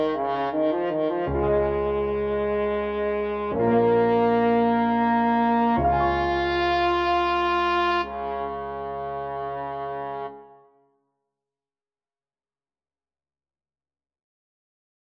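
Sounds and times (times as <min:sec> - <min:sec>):
two French horns playing a duet: 0:00.0 - 0:10.6.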